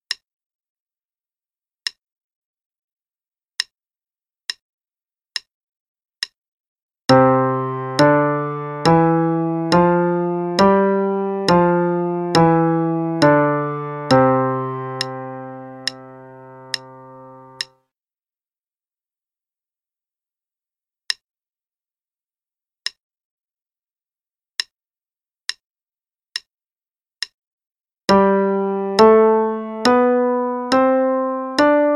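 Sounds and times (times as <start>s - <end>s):
five-finger pattern exercise in C and G: 7.1s - 17.8s, 28.1s - 31.9s.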